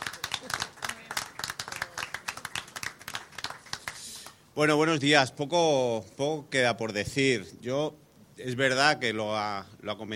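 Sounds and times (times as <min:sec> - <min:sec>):
audience applause: 0:00.0 - 0:04.2
speech: 0:04.6 - 0:10.1.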